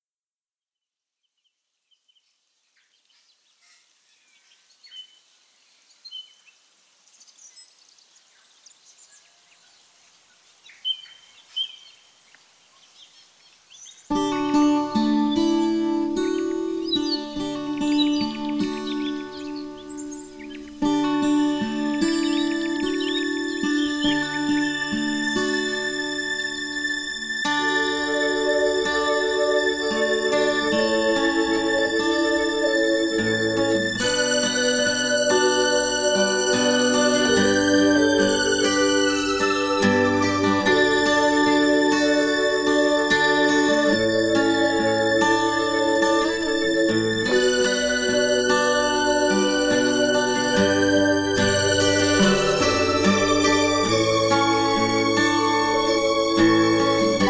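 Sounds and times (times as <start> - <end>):
ambient melody: 14.2 - 57.2.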